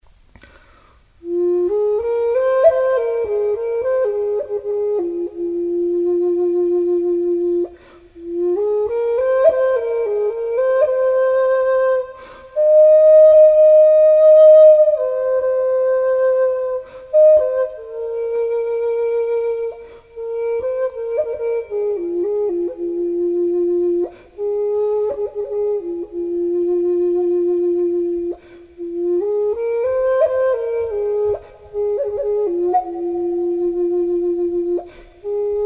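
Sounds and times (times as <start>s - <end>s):
flute: 0.4s - 35.6s.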